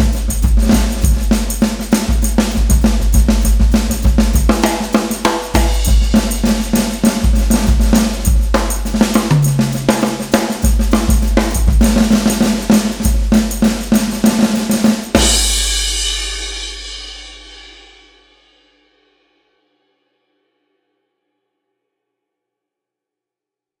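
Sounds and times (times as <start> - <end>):
second line drums playing: 0.0 - 17.2.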